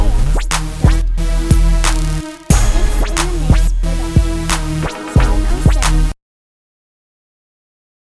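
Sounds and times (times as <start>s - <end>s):
music beat: 0.0s - 6.2s.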